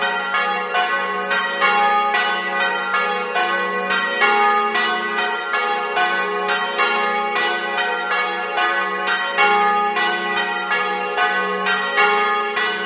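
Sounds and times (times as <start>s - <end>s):
bells ringing: 0.0s - 12.8s.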